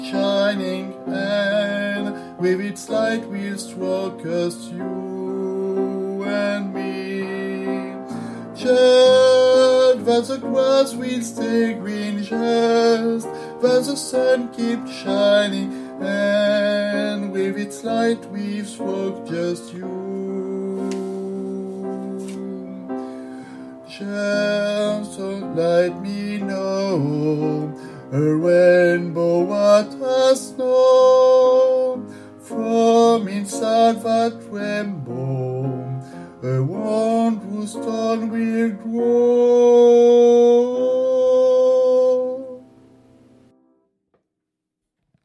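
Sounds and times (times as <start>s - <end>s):
soprano singing: 0.0s - 42.8s
piano: 0.0s - 44.0s.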